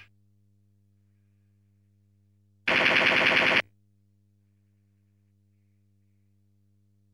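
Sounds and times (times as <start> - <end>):
enemy gunfire: 2.7 - 3.6.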